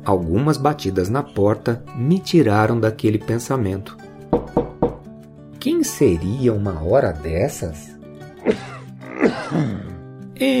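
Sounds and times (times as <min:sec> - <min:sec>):
speech: 0:00.0 - 0:04.6, 0:05.7 - 0:09.8, 0:10.4 - 0:10.5
man coughing outside the door: 0:08.4 - 0:10.0.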